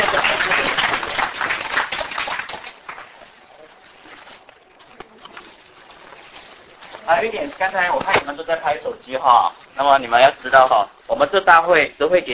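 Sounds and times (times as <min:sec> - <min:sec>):
audience applause: 0:00.0 - 0:03.6
speech: 0:07.1 - 0:12.3.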